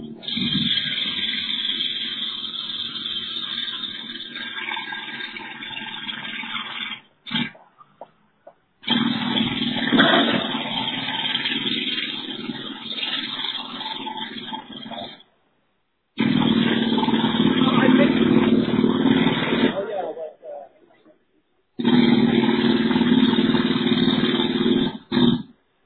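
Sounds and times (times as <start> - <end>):
jackhammer heard through voicemail: 0.2 - 7.5, 8.8 - 15.2, 16.1 - 19.8, 21.8 - 25.5.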